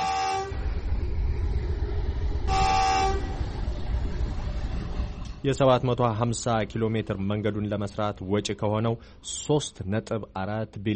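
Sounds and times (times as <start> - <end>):
train horn on the Ethio-Djibouti railway: 0.0 - 0.6, 2.5 - 3.4
train on the Ethio-Djibouti railway rumbling: 0.0 - 10.8
speech: 5.4 - 10.9.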